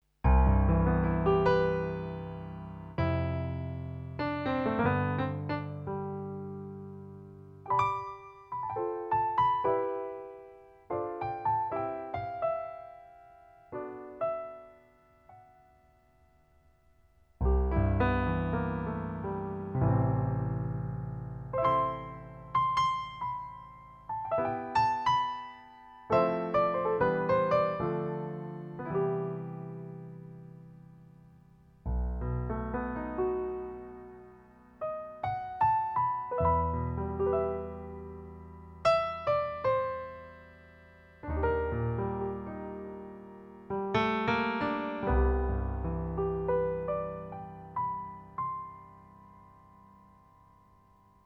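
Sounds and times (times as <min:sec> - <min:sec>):
grand piano: 0:00.0 - 0:51.2.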